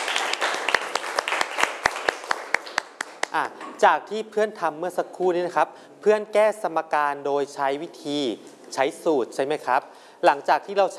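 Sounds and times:
classroom group clapping for a classmate: 0.0 - 3.5
speech: 3.3 - 10.9.

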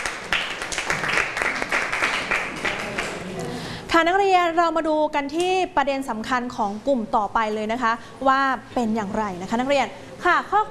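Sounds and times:
classroom applause for a classmate: 0.0 - 3.5
speech: 4.0 - 10.6.

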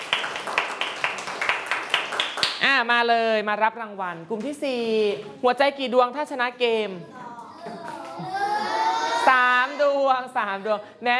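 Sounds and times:
group clapping: 0.0 - 2.7, 7.7 - 8.4
speech: 2.7 - 7.2, 9.2 - 11.1.

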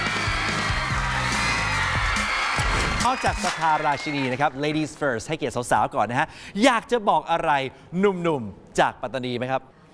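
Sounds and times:
audience applause and cheering welcoming two school student teams: 0.0 - 5.2
speech: 3.0 - 9.8.

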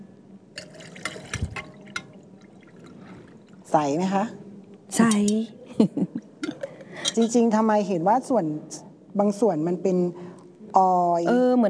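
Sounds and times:
water poured into a mixture: 0.6 - 3.8
speech: 3.7 - 6.2, 7.2 - 10.2, 10.8 - 11.6.

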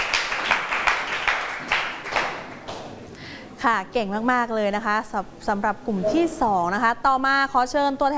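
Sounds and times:
classroom group applauding: 0.0 - 3.0
speech: 3.6 - 8.1.

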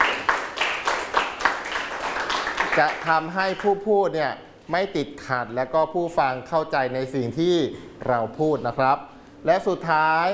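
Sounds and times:
group of children clapping: 0.0 - 3.7
speech: 2.8 - 10.3.

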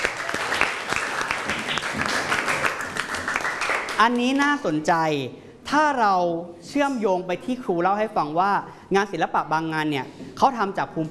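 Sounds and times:
audience applause: 0.0 - 4.0
speech: 4.0 - 11.1.

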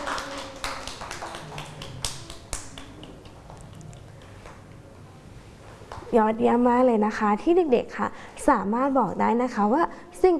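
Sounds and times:
children clapping hands: 0.0 - 4.6
speech: 6.1 - 10.3.

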